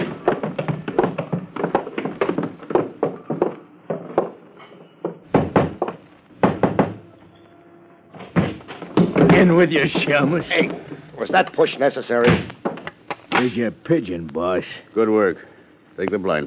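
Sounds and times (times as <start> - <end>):
footsteps going down cellar steps: 0.0 - 6.9, 8.2 - 13.5
speech: 9.4 - 12.5, 13.4 - 16.4.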